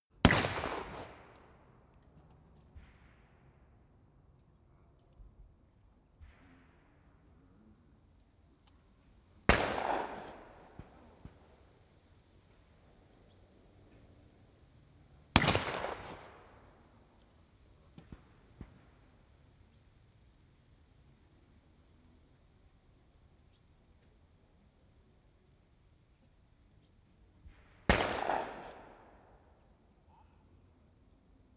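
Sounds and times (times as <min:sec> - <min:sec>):
gunshots at a shooting range: 0:00.2 - 0:01.6, 0:09.5 - 0:11.5, 0:15.3 - 0:16.9, 0:27.9 - 0:29.2.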